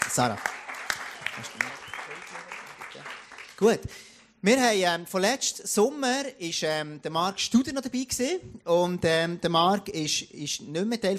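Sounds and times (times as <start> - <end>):
crowd applauding: 0.0 - 3.7
speech: 0.2 - 0.5, 1.4 - 11.1.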